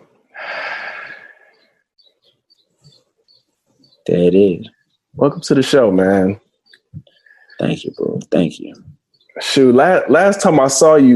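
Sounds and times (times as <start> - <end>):
deep exhale during a guided breathing exercise: 0.4 - 1.5
speech: 4.0 - 6.4, 7.6 - 11.1.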